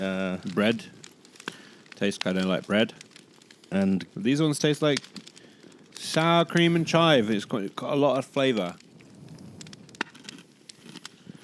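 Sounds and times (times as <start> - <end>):
speech: 0.0 - 1.0, 2.0 - 3.0, 3.7 - 5.3, 6.1 - 8.8
fireplace crackling: 0.0 - 11.4
soft low rumble: 8.8 - 10.1.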